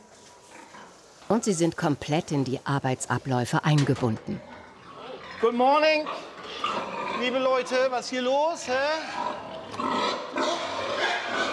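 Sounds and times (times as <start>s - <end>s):
speech: 1.3s - 4.5s, 5.4s - 9.2s
young sows squealing and grunting at feeding time in a pig barn: 4.4s - 11.5s.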